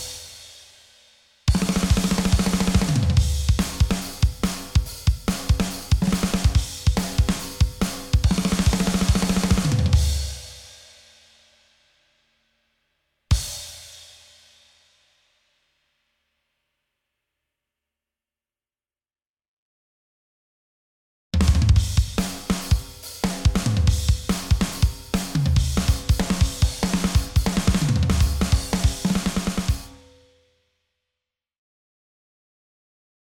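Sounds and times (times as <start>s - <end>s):
drums: 0.0s - 12.0s, 13.3s - 15.4s, 21.4s - 30.2s.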